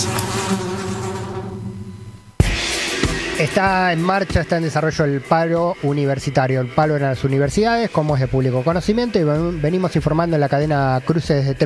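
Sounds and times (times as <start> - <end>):
sudden loud burst of sound: 0.0 - 4.9
swarm of flies buzzing: 0.0 - 9.9
speech: 3.4 - 11.6.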